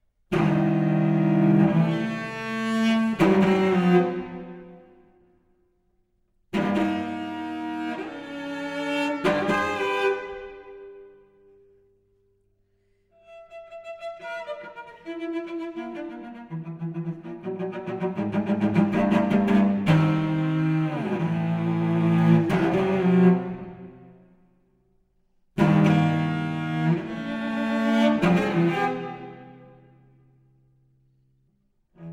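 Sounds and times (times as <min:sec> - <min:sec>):
solo cello playing lento maestoso: 0:00.2 - 0:05.2, 0:06.3 - 0:12.0, 0:12.8 - 0:24.6, 0:25.4 - 0:32.1.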